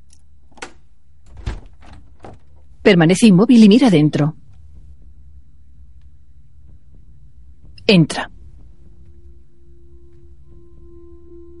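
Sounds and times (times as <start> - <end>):
door opening: 0.5 - 2.7, 4.4 - 10.9
speech: 2.8 - 4.4, 7.9 - 8.4.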